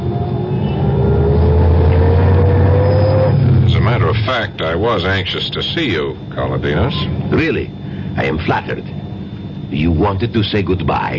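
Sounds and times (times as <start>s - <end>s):
Rolls-Royce car engine pulling away from the curb: 0.0s - 4.0s
speech: 4.9s - 9.0s, 9.7s - 11.1s.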